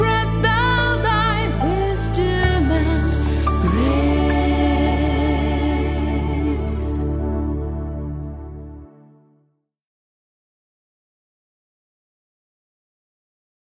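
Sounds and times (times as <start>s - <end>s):
anthem music: 0.0s - 9.4s.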